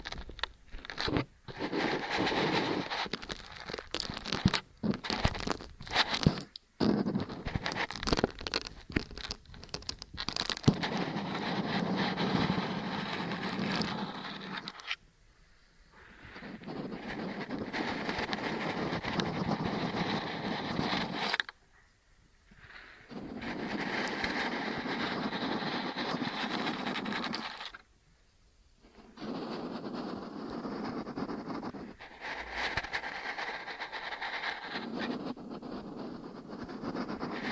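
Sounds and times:
dense crackly rubbing of ear cleaning and kinetic sand: 0.0s - 15.0s, 15.8s - 27.9s, 28.8s - 37.5s.

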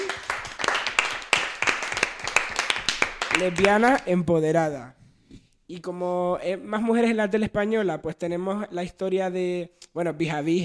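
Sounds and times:
applause: 0.0s - 4.1s
speech: 3.4s - 5.0s, 5.7s - 10.6s.

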